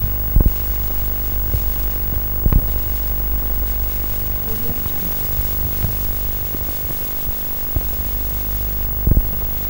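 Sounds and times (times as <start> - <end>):
static noise: 0.0 - 9.6.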